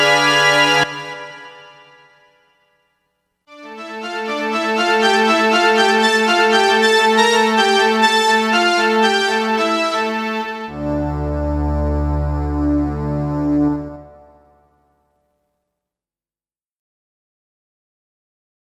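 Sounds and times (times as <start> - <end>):
classical prologue piece in D minor: 0.0 - 2.6, 3.5 - 14.8.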